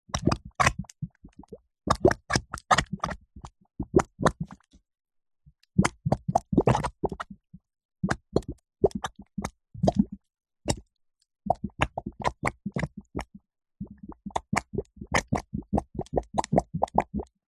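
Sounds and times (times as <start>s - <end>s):
wet mud bubbling and spitting slowly: 0.1s - 4.7s, 5.8s - 7.4s, 8.0s - 10.9s, 11.5s - 17.4s.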